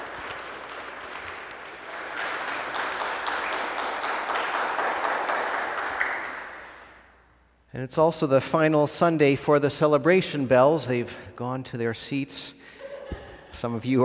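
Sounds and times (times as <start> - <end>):
audience applause for the choir: 0.0 - 7.0
speech: 7.8 - 12.8, 13.5 - 14.0.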